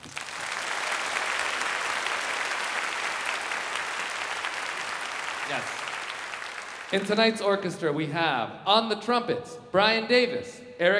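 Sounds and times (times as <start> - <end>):
audience applause for an orchestra: 0.0 - 7.7
speech: 5.5 - 5.8, 6.9 - 10.9.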